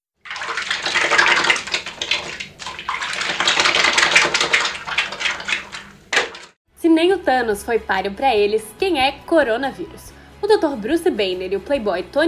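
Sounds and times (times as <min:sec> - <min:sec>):
running tap water splashing: 0:00.2 - 0:06.6
speech: 0:07.0 - 0:12.2.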